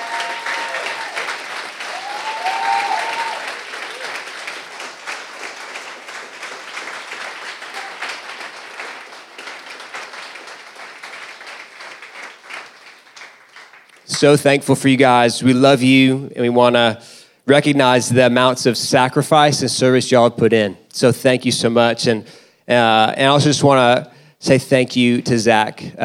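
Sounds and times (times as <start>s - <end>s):
audience applause: 0.0s - 14.0s
speech: 14.2s - 26.0s.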